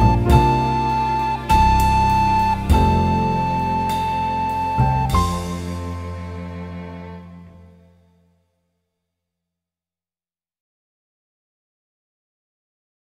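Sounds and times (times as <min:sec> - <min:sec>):
backing track: 0:00.0 - 0:08.3.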